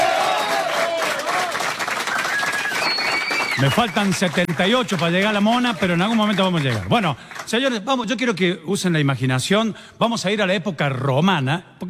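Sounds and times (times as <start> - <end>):
studio audience applause: 0.0 - 7.8
speech: 3.6 - 11.8.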